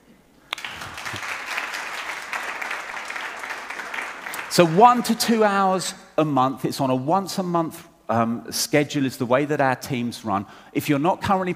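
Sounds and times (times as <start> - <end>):
audience applause: 0.5 - 5.2
speech: 4.6 - 11.5.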